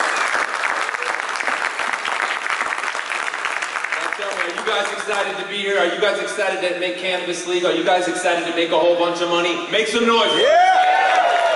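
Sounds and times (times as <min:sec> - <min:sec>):
audience applause at an event: 0:00.0 - 0:05.4, 0:10.6 - 0:11.5
speech: 0:04.7 - 0:10.7.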